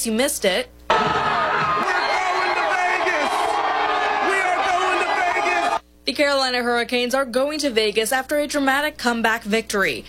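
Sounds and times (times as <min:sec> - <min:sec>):
speech: 0:00.0 - 0:01.2, 0:06.2 - 0:10.0
large crowd of hockey fans cheering, whooping and shouting: 0:00.9 - 0:05.8.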